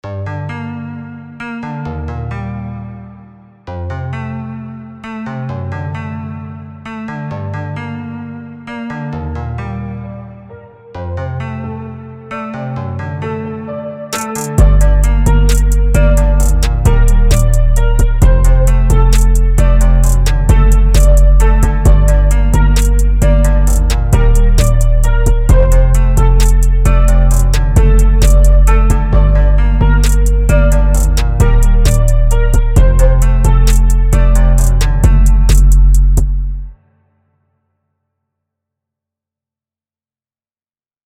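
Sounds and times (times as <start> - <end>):
music beat: 14.1 - 36.7.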